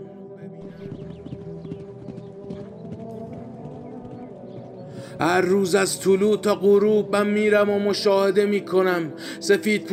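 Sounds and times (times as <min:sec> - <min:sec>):
hooves of a saddled horse clip-clopping as it rides off: 0:00.7 - 0:04.9
speech: 0:05.2 - 0:09.9.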